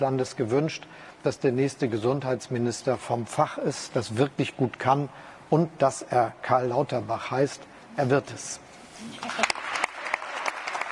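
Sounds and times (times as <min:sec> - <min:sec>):
speech: 0:00.0 - 0:09.6
audience applause at a German political event: 0:09.2 - 0:10.9.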